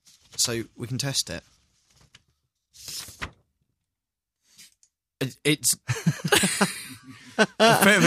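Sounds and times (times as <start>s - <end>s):
speech: 0.4s - 1.6s, 5.4s - 8.0s
A4 paper pulled from an envelope: 1.6s - 3.4s
laughter: 5.8s - 8.0s.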